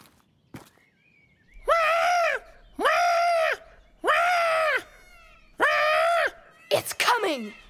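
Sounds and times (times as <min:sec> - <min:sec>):
voice imitating harsh phoenix bird call: 0:01.6 - 0:07.6
speech: 0:06.8 - 0:07.6.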